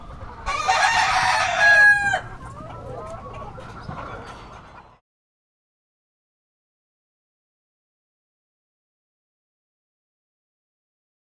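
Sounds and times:
distant village rooster crowing: 0.4s - 2.8s.

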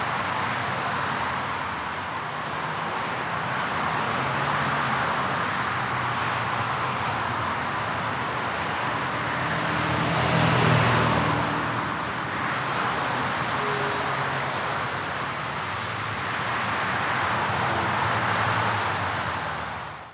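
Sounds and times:
cars on a city highway: 0.0s - 20.1s.

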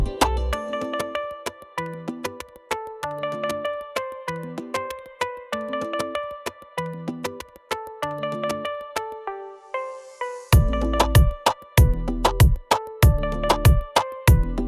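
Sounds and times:
reggaeton beat: 0.0s - 0.6s, 10.6s - 14.6s.

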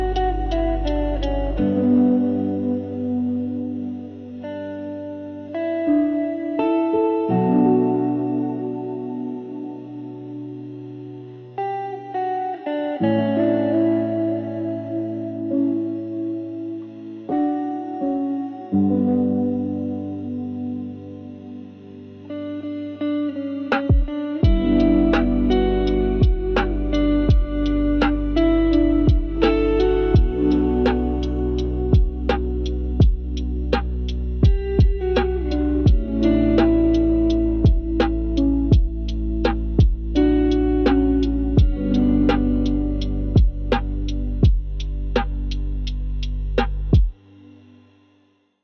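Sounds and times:
cozy soft lo-fi music: 0.0s - 48.0s.

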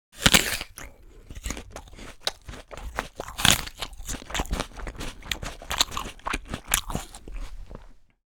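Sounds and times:
person eating an apple, chewing: 0.2s - 8.2s.

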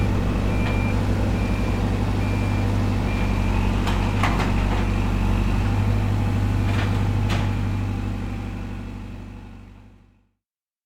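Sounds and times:
bulldozer demolition: 0.0s - 10.2s.

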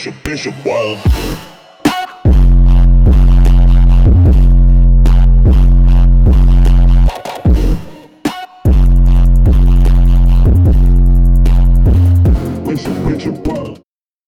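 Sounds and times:
boosted bass: 0.0s - 7.9s, 8.7s - 13.8s.

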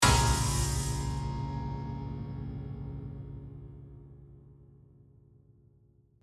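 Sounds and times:
piano lid slamming: 0.0s - 3.6s
horror piano chord crash: 0.0s - 5.2s.

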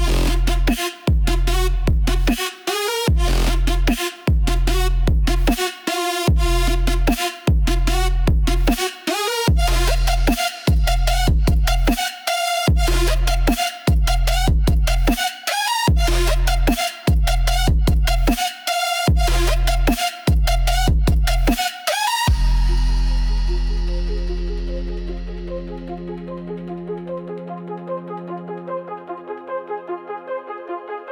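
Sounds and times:
trap hip hop beat bass: 0.0s - 26.6s.

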